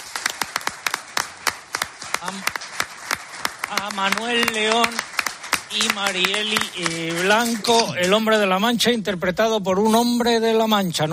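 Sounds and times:
audience hand claps: 0:00.0 - 0:08.5
speech: 0:02.2 - 0:02.7, 0:03.7 - 0:05.1, 0:05.7 - 0:11.1.

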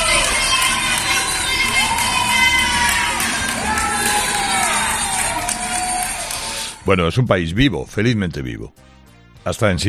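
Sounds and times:
people cheering from balconies: 0:00.0 - 0:06.9
speech: 0:06.9 - 0:09.8.

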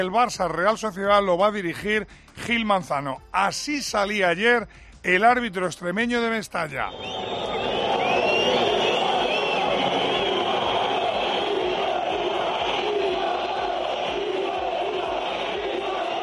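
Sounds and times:
speech: 0:00.0 - 0:07.6
shrill whistles: 0:03.8 - 0:04.4, 0:06.7 - 0:16.2
stadium crowd jeering and shouting insults at the referee: 0:06.9 - 0:16.2.

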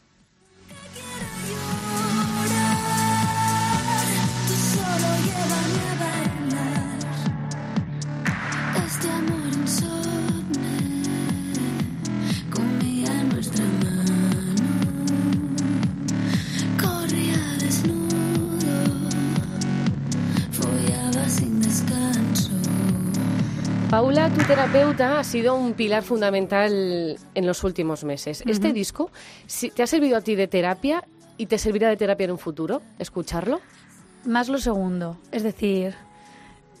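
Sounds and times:
techno dance track with four-on-the-floor beat and synth chords: 0:00.7 - 0:28.9
speech: 0:24.2 - 0:36.1.

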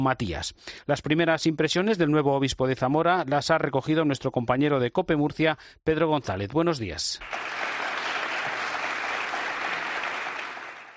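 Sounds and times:
speech: 0:00.0 - 0:07.8
crowd applause at an announcement: 0:07.2 - 0:10.9.

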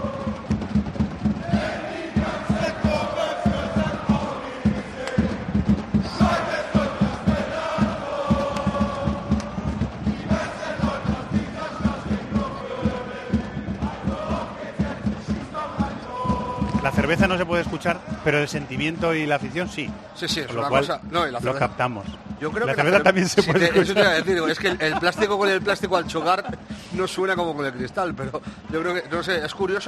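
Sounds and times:
huge football stadium crowd chanting in unison: 0:00.0 - 0:27.2
rhythmic thumps: 0:00.0 - 0:29.8
speech: 0:17.3 - 0:29.8
laughter: 0:22.7 - 0:26.8.

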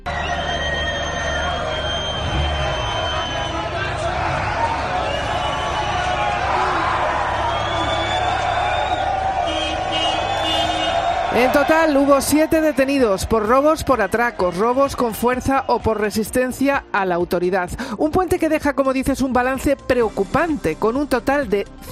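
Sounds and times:
crowd of young people shouting and chattering: 0:00.0 - 0:16.5
speech: 0:11.4 - 0:21.9.

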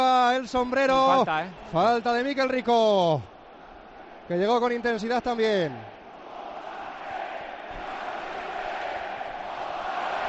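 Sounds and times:
speech: 0:00.4 - 0:03.3, 0:04.3 - 0:05.9
stadium crowd chanting: 0:03.3 - 0:04.3, 0:05.7 - 0:10.2.

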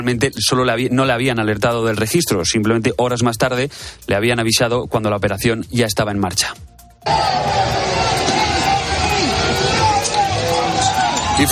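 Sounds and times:
speech: 0:00.0 - 0:07.8
crowd of protesters in the streets of France: 0:07.0 - 0:11.4
street noise in France: 0:07.0 - 0:11.4.

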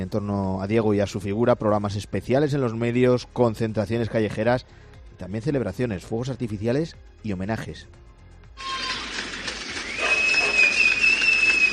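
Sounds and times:
speech: 0:00.0 - 0:08.0, 0:08.6 - 0:08.8
long piercing whistle: 0:08.6 - 0:09.2, 0:09.8 - 0:11.7
clapping from many homes in Argentina: 0:08.8 - 0:11.7.

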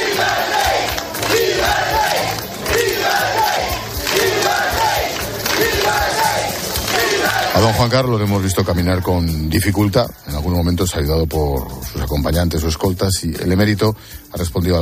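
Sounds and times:
large crowd cheering and applauding: 0:00.0 - 0:09.2
speech: 0:07.7 - 0:14.7.

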